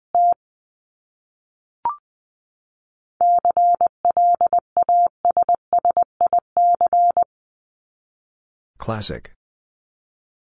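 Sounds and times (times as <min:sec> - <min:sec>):
Morse code beeps at 20wpm: 0:03.2 - 0:07.3.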